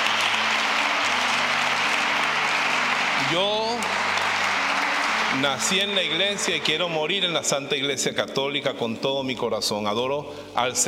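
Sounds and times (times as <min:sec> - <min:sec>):
audience applause: 0:00.0 - 0:07.5
speech: 0:03.3 - 0:04.0, 0:05.3 - 0:10.8.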